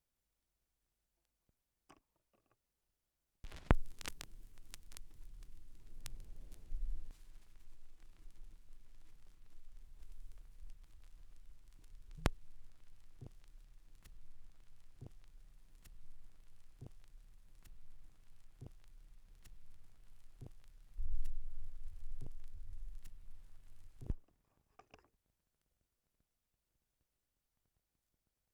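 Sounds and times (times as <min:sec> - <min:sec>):
vinyl record crackle: 0:03.4 - 0:24.2.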